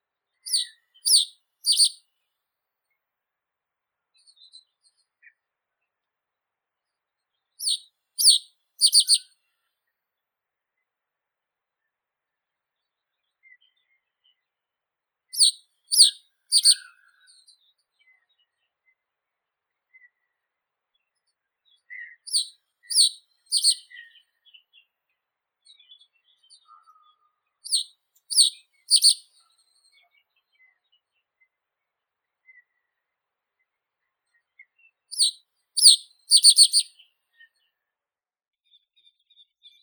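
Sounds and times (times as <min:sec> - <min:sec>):
common reed bunting Emberiza schoeniclus: 0:00.5 - 0:02.0, 0:07.6 - 0:09.3, 0:15.4 - 0:17.6, 0:22.0 - 0:24.6, 0:27.7 - 0:30.1, 0:35.1 - 0:36.9.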